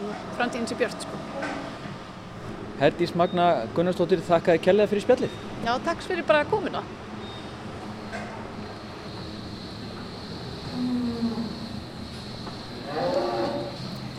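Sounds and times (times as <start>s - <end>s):
steady hum of ventilation or machinery: 0.0s - 14.1s
speech: 0.4s - 1.7s, 2.8s - 7.0s
cattle mooing in a cowshed: 10.7s - 11.8s, 12.7s - 14.0s.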